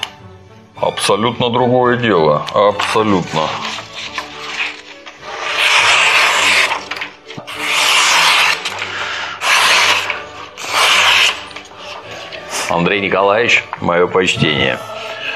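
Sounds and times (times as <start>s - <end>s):
speech: 0.8s - 4.2s, 12.7s - 14.9s
sharpened knife cutting paper: 2.6s - 13.8s.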